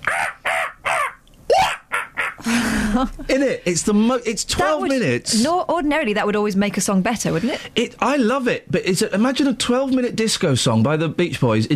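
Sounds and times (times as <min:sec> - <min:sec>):
voice imitating a monkey call: 0:00.0 - 0:02.4
speech: 0:02.4 - 0:11.7.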